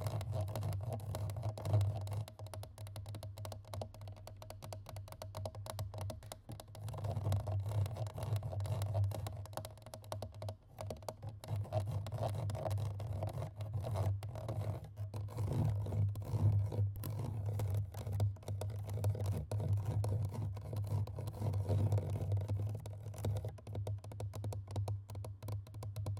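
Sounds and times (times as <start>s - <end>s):
fast aggressive scratching and tapping on a microphone: 0.0s - 26.1s.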